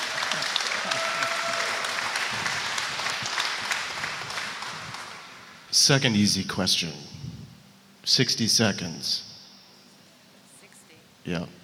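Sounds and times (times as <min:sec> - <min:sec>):
audience applause: 0:00.0 - 0:05.6
speech: 0:05.8 - 0:07.1, 0:08.1 - 0:09.3, 0:11.2 - 0:11.6.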